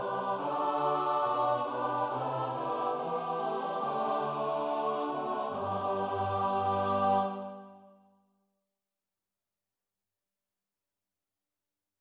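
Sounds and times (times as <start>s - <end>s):
choir singing: 0.0s - 8.0s.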